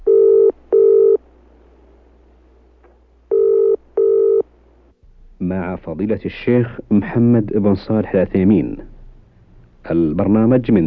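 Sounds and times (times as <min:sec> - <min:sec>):
telephone ringing tone: 0:00.0 - 0:01.2, 0:03.3 - 0:04.5
speech: 0:05.5 - 0:08.9, 0:09.8 - 0:10.8.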